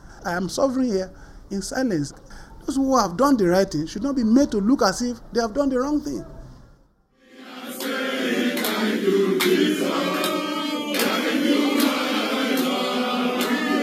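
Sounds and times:
speech: 0.2s - 6.4s
crowd in Nigeria welcoming former state governor: 7.2s - 13.8s.

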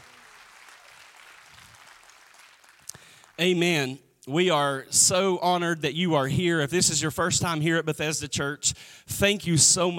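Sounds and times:
audience hand clap applause: 0.0s - 3.4s
speech: 3.4s - 9.9s.

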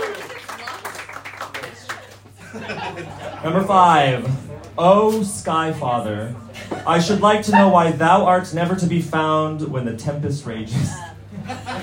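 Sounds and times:
audience applause: 0.0s - 2.4s
low steady hum: 2.2s - 11.8s
laughter: 2.3s - 4.5s, 6.4s - 8.0s, 11.3s - 11.8s
speech: 2.5s - 11.1s.

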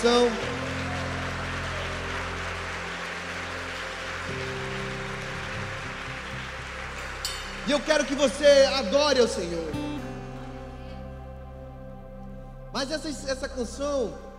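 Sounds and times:
speech: 0.0s - 0.6s, 7.7s - 9.8s, 12.9s - 14.3s
audience applauding: 0.0s - 10.5s.

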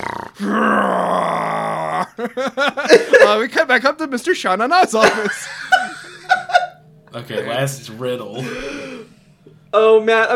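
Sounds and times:
person imitating a bull's snarling roar: 0.0s - 2.2s
speech: 0.4s - 0.8s, 2.2s - 5.8s, 7.1s - 8.9s, 9.7s - 10.3s
laughter: 1.9s - 3.6s, 4.8s - 7.6s, 8.3s - 9.1s.

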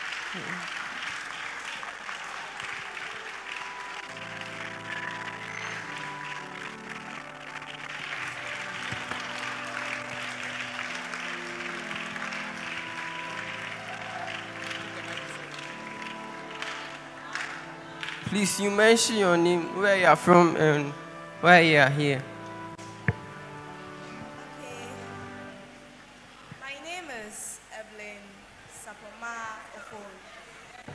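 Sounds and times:
audience applauding: 0.0s - 22.3s
speech: 0.3s - 0.9s, 18.3s - 22.3s
sustained musical chords: 3.5s - 26.5s.

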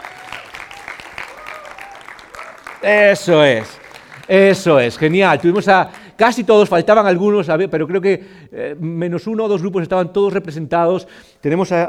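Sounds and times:
audience applause: 0.0s - 6.2s
speech: 2.8s - 11.8s.

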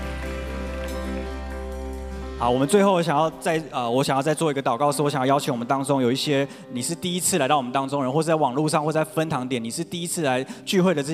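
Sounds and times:
audience applause: 0.0s - 2.6s
speech: 2.4s - 11.1s.

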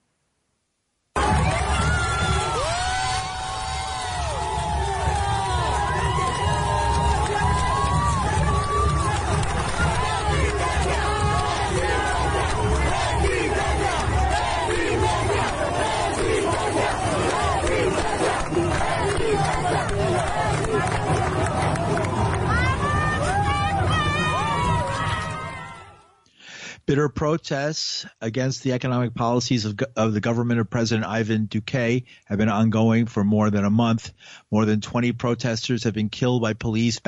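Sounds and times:
crowd cheering and shouting for student protesters in Cali: 1.2s - 26.2s
speech: 27.2s - 37.0s.

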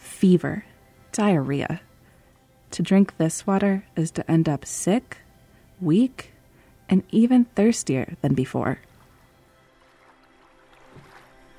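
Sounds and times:
speech: 0.2s - 1.9s, 2.7s - 5.2s, 5.8s - 6.3s, 6.9s - 8.9s
oars splashing as boys row rafts: 9.0s - 11.5s.

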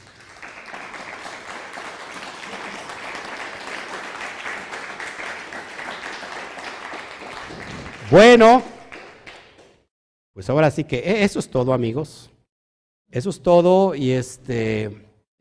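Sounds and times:
strong applause: 0.0s - 9.8s
speech: 8.1s - 8.7s, 10.4s - 12.3s, 13.1s - 15.4s.

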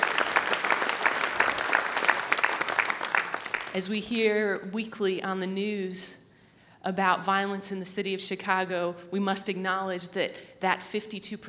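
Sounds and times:
audience applause: 0.0s - 3.8s
speech: 3.7s - 6.2s, 6.8s - 11.4s.

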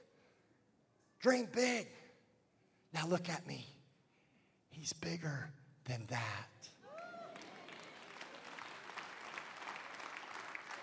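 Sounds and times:
speech: 1.2s - 2.0s, 2.9s - 3.8s, 4.8s - 6.8s
weak audience clapping: 6.8s - 10.8s.

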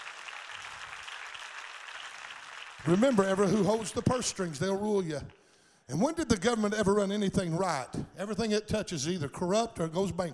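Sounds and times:
crowd applauding: 0.0s - 5.3s
speech: 2.8s - 10.3s.

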